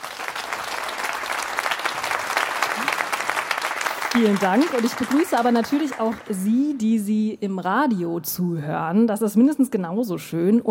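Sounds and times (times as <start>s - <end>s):
audience applause: 0.0s - 6.7s
speech: 4.2s - 10.7s.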